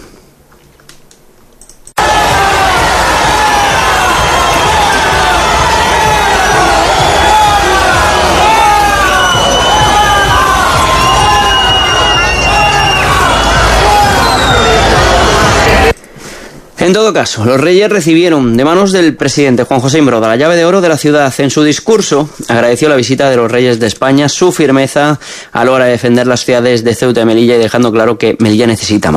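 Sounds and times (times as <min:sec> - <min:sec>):
crowd voices shouting: 0:02.0 - 0:15.9
large crowd cheering: 0:02.0 - 0:16.0
crowd whistles: 0:04.0 - 0:05.2, 0:08.8 - 0:15.9
speech: 0:16.9 - 0:29.1.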